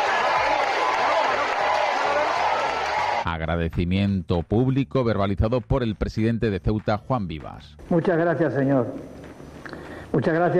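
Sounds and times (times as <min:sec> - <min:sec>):
crowds in Ceuta cheering King Felipe VI and Queen Letizia of Spain: 0:00.0 - 0:03.3
speech: 0:03.3 - 0:09.2, 0:10.1 - 0:10.5.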